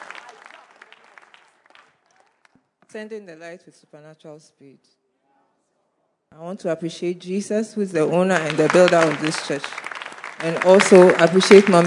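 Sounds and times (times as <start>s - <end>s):
audience clapping: 0.0s - 2.6s, 8.2s - 11.8s
speech: 2.9s - 5.0s, 6.3s - 9.8s, 10.4s - 11.8s.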